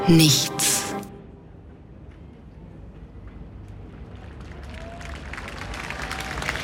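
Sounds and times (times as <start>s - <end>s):
speech: 0.1s - 0.8s
outdoor crowd applause: 4.2s - 6.6s.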